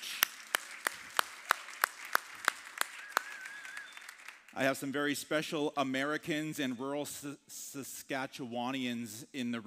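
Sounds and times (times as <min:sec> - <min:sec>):
audience claps in unison: 0:00.0 - 0:04.6
faint high whistle: 0:03.0 - 0:04.2
speech: 0:04.6 - 0:09.6.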